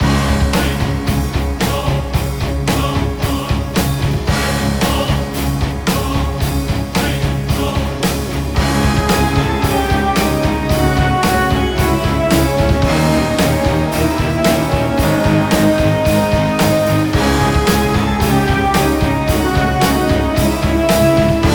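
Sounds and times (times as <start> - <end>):
quirky action music loop: 0.0 - 21.5.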